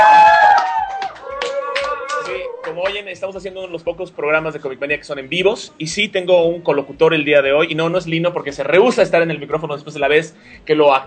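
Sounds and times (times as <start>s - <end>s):
hand claps: 0.0s - 3.0s
speech: 3.1s - 11.0s.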